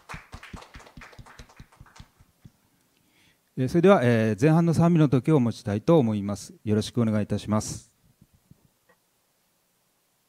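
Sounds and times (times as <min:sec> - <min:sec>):
audience applause: 0:00.0 - 0:02.2
speech: 0:03.6 - 0:07.9.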